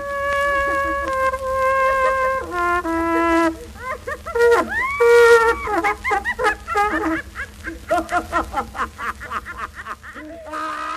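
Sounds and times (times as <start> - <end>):
cornet notes on a 1922 record recorded in Germany: 0.0 - 7.9
hysterical laughter: 3.6 - 10.9.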